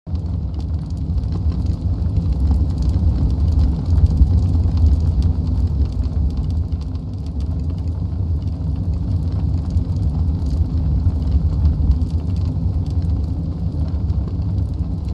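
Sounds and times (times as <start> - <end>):
heater running: 0.1 - 15.1.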